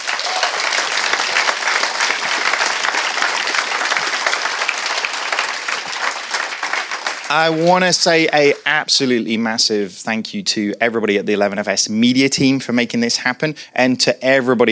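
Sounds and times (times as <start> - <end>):
round of applause from a crowd: 0.0 - 8.6
speech: 7.3 - 14.7.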